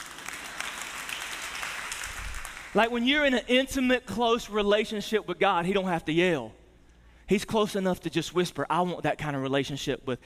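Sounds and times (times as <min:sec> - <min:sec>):
audience clapping: 0:00.0 - 0:02.9
speech: 0:02.8 - 0:06.6, 0:07.3 - 0:10.2.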